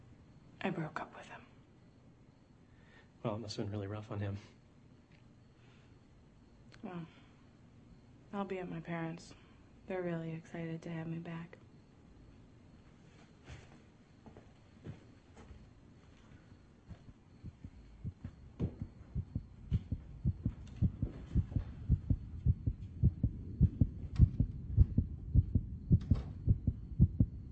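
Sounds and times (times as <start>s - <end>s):
speech: 0.6s - 1.5s, 3.2s - 4.6s, 6.8s - 7.2s, 8.3s - 11.6s
mother's and baby's heartbeats on ultrasound: 16.6s - 27.5s.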